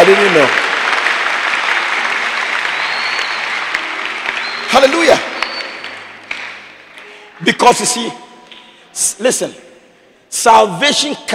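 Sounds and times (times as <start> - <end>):
audience clapping: 0.0 - 8.7
speech: 0.1 - 0.7, 4.7 - 5.3, 7.4 - 8.3, 9.0 - 9.7, 10.3 - 11.3.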